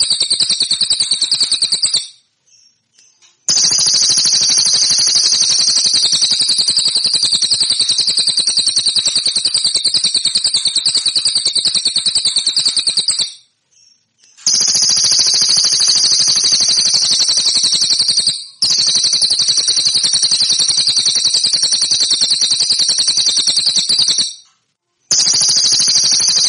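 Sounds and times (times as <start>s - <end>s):
song: 0.0s - 2.2s, 3.5s - 13.5s, 14.3s - 24.4s, 25.1s - 26.4s.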